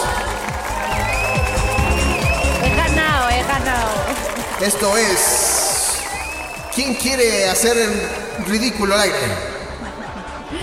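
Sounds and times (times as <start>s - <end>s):
applause: 0.0s - 8.9s
high whistling tones: 0.7s - 3.0s, 4.6s - 8.6s
laughter: 2.8s - 10.6s
speech: 4.6s - 5.4s, 6.8s - 9.5s.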